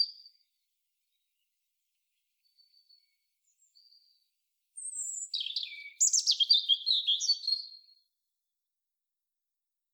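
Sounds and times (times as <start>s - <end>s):
European robin singing: 4.8s - 7.8s.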